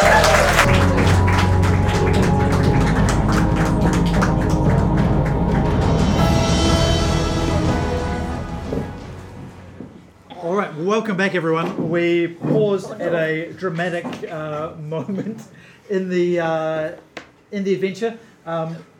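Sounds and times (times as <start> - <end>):
audience applause at a live adventure game: 0.0 - 9.8
speech: 10.9 - 18.9.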